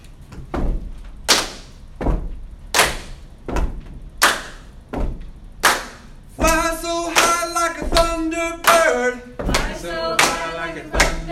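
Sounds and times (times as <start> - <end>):
deep thudding foot stomps: 0.2 - 9.8
sharp bright hand claps: 1.3 - 1.8, 2.7 - 3.3, 4.2 - 4.8, 5.6 - 11.3.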